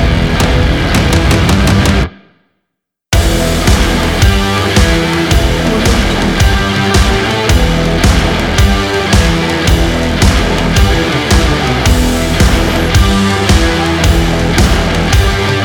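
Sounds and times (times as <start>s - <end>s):
action sport rock drum kit: 0.0s - 2.2s, 3.2s - 15.6s.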